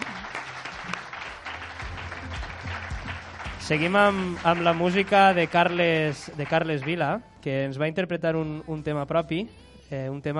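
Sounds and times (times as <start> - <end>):
audience applause: 0.0 - 7.0
speech: 3.7 - 10.3.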